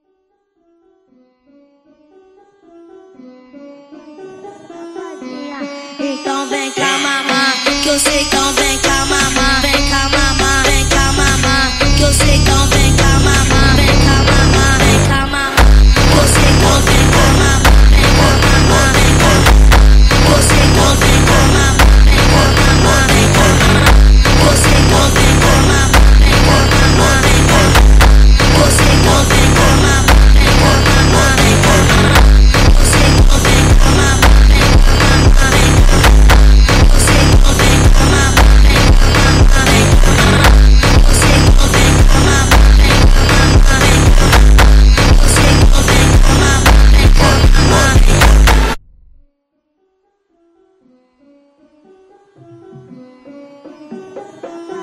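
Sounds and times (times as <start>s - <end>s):
slowed Arabic funk music: 6.8s - 49.0s.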